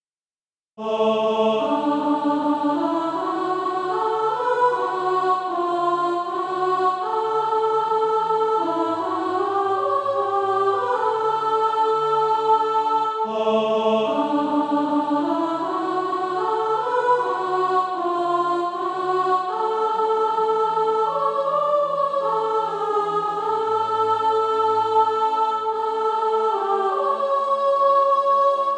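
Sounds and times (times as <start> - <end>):
soprano singing practice music: 0.8 - 28.7.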